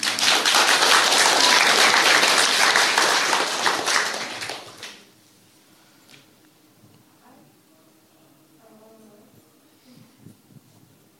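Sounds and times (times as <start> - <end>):
crowd clapping: 0.0 - 5.1.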